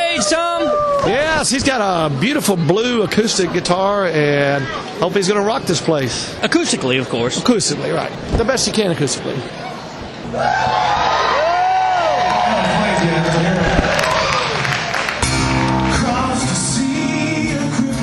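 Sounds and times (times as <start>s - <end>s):
large concert crowd roaring and cheering: 0.0s - 2.4s, 10.2s - 17.9s
speech: 0.2s - 11.2s
scattered clapping: 12.2s - 16.0s.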